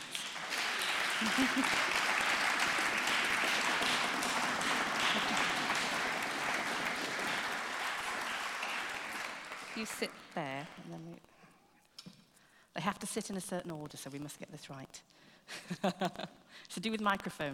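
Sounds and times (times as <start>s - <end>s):
audience applause: 0.0s - 10.8s
laughter: 0.7s - 7.6s, 15.5s - 16.4s
speech: 1.2s - 2.0s, 9.8s - 11.4s, 12.8s - 14.8s, 15.7s - 17.5s.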